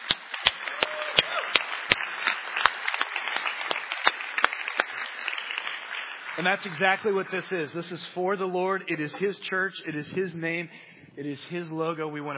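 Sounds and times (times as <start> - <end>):
audience applauding and cheering: 0.0 - 7.4
speech: 6.4 - 12.3.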